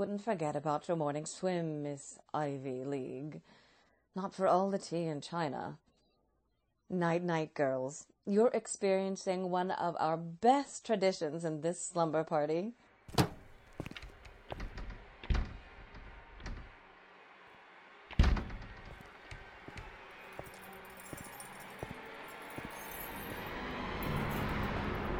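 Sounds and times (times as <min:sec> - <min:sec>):
speech: 0:00.0 - 0:03.6, 0:04.2 - 0:05.8, 0:06.9 - 0:13.3
keys rattling in a lock: 0:19.7 - 0:25.0.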